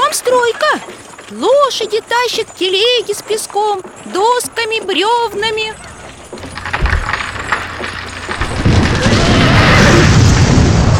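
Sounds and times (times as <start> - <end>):
speech: 0.5 - 5.9
clattering knocks and thuds: 5.4 - 10.9
Kremlin stone wall masonry crashing down: 5.5 - 10.9.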